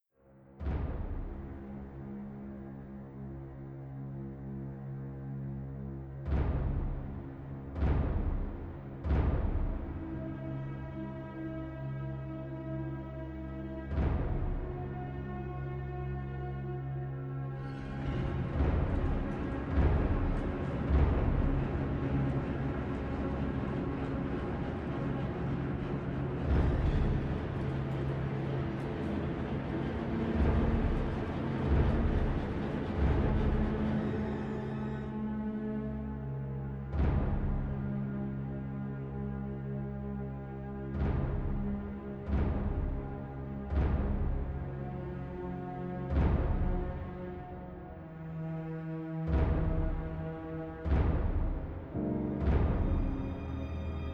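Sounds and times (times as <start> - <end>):
strange atmospheric production music: 0.4 - 54.1.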